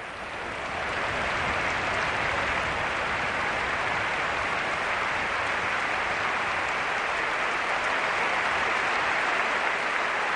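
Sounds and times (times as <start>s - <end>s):
stadium crowd applauding at San Mamés: 0.0s - 10.3s.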